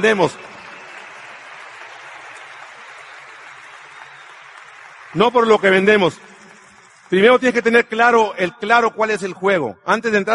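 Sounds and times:
speech: 0.0s - 0.5s, 5.1s - 6.3s, 7.1s - 10.3s
crowd applause: 0.0s - 7.5s.

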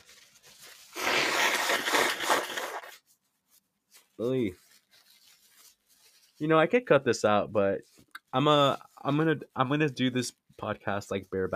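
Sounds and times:
person blowing nose: 0.8s - 3.0s
speech: 4.2s - 4.6s, 6.4s - 11.5s.

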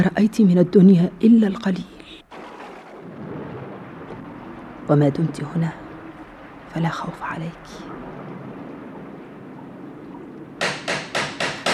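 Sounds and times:
speech: 0.0s - 1.9s, 4.9s - 5.8s, 6.8s - 8.1s
knocking on a door: 10.6s - 11.7s.

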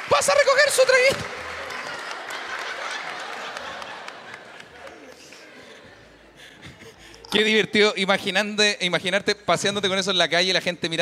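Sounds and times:
audience applause for a costume contest entrant on stage: 0.0s - 6.0s
speech: 0.1s - 1.4s, 7.3s - 11.0s
laughter: 1.3s - 7.7s.

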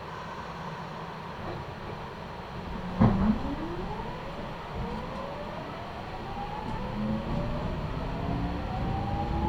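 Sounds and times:
Meitetsu Toyota Line train rumbling: 0.1s - 9.4s
train motor whine rising as the train speeds up: 1.9s - 9.4s.

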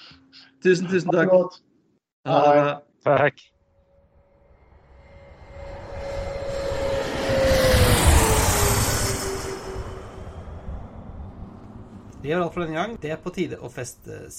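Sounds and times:
speech: 0.6s - 3.6s, 12.2s - 14.3s
thin descending whine of an airplane: 3.7s - 12.6s
airplane engine roar coming in to land: 4.0s - 13.2s.

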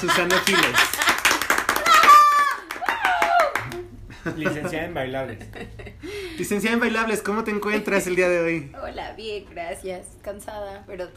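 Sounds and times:
speech: 0.0s - 1.0s, 4.2s - 11.1s
laughter: 0.0s - 2.6s, 3.6s - 6.1s
crowd applauding: 0.0s - 3.9s.

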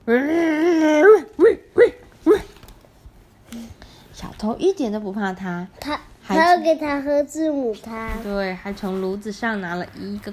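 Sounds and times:
speech: 0.1s - 0.5s, 4.5s - 10.3s
person imitating a dog barking: 0.6s - 2.6s.

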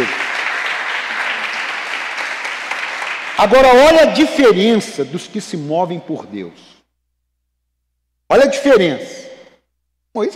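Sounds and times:
audience applauding: 0.0s - 4.0s
speech: 3.4s - 6.7s, 8.3s - 9.3s, 10.1s - 10.3s.

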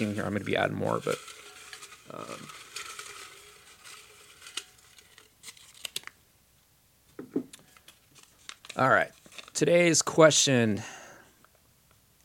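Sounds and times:
speech: 0.0s - 1.4s, 2.1s - 2.6s, 8.8s - 11.0s
paper question slips rustling in a question jar: 0.0s - 6.2s, 7.6s - 10.2s.

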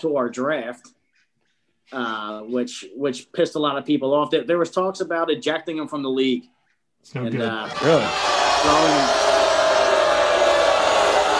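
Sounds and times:
speech: 0.0s - 1.0s, 1.9s - 9.3s
raised voices: 7.4s - 11.3s
crowd roar: 7.6s - 11.3s.

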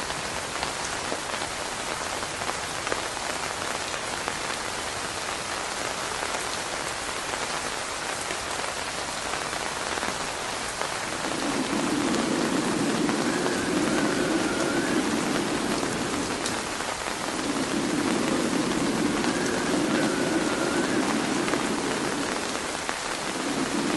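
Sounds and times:
rain: 0.0s - 23.9s
wind: 0.0s - 23.9s
thunder: 11.1s - 23.9s.

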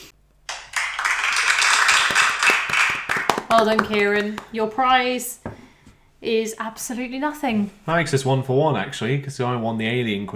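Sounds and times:
canned applause: 0.5s - 4.6s
speech: 3.5s - 5.4s, 6.2s - 10.3s.

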